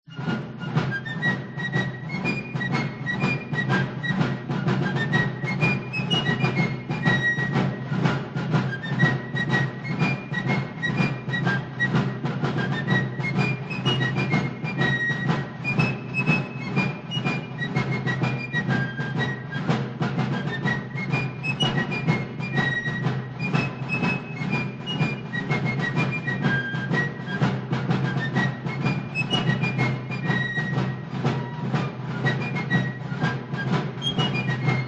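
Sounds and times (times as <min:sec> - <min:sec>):
fife and drum corps playing: 0:00.1 - 0:34.8.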